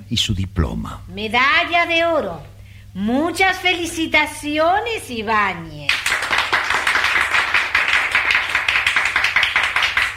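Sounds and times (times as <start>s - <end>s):
speech: 0.1s - 6.0s
half-hearted applause: 5.9s - 10.1s.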